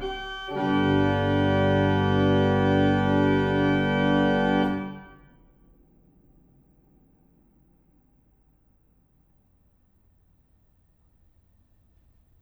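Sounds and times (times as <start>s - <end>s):
organ concerto: 0.0s - 5.3s.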